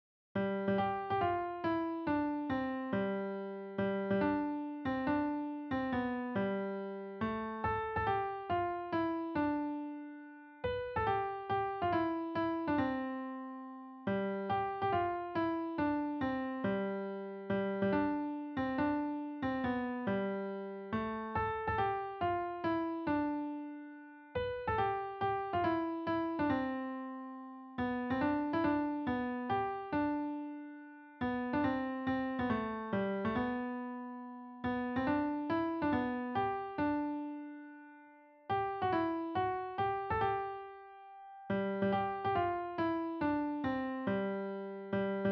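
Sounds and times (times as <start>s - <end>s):
piano melody: 0.4s - 45.3s.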